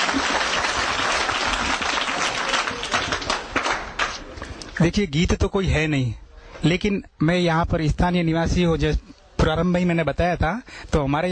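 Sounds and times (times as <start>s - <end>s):
audience applause: 0.0s - 4.2s
speech: 4.8s - 11.2s.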